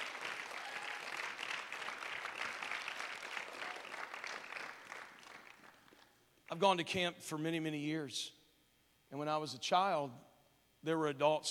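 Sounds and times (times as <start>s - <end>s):
audience clapping: 0.0s - 6.2s
speech: 6.5s - 8.4s, 9.1s - 11.4s.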